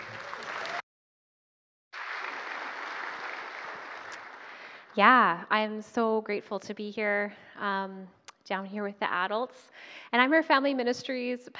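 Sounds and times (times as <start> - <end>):
audience applause welcoming a speaker: 0.0 - 0.8, 2.0 - 5.0
speech: 5.0 - 11.5.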